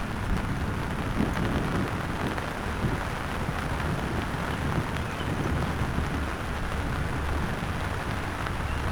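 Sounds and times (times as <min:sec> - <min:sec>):
afternoon spring thunderstorm in Akron: 0:00.2 - 0:08.9.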